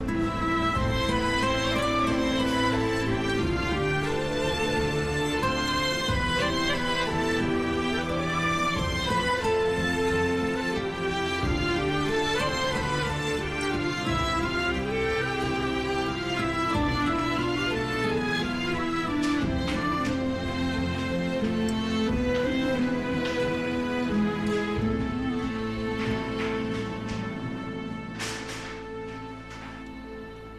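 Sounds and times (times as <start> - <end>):
clarinet: 0.0 - 30.5
violin: 0.0 - 30.5.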